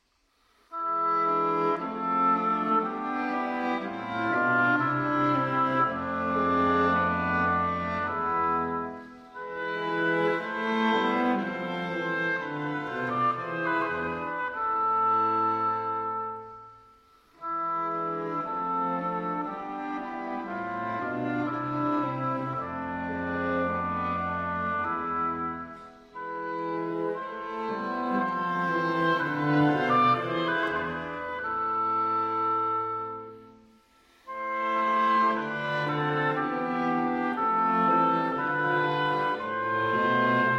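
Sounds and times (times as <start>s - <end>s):
oboe quartet arrangement: 0.7s - 16.8s, 17.4s - 40.5s.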